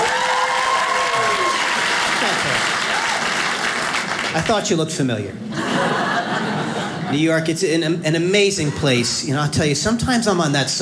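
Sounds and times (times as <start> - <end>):
audience applause: 0.0 - 4.6
laughter: 2.0 - 3.2, 5.5 - 7.4
speech: 4.4 - 6.0, 7.1 - 10.7.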